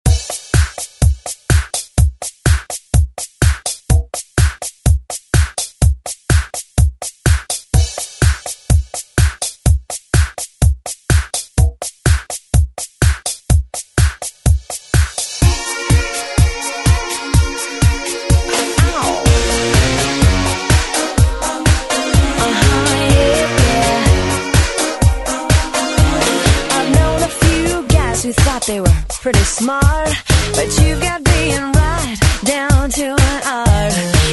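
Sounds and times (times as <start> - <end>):
90s drum beat: 0.0 - 34.3.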